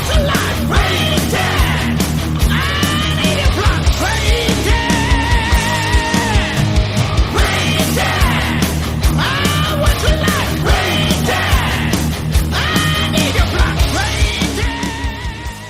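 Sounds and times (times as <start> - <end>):
dense guitars: 0.0 - 15.6
driving drums: 0.0 - 15.6
loud hard-edged rock song: 0.0 - 15.6
shouted vocals: 0.0 - 15.6.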